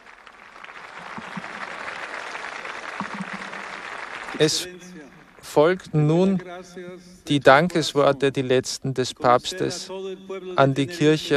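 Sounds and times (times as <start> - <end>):
jubilant crowd cheering and applauding: 0.0 - 5.5
speech: 4.4 - 11.3.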